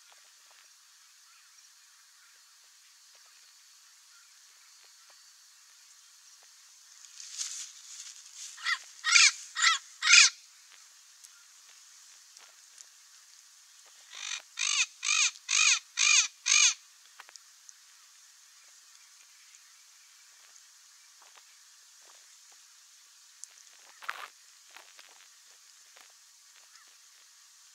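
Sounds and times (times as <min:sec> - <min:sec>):
Amazon parrot giving harsh squawks: 0:08.6 - 0:10.4, 0:14.1 - 0:16.8.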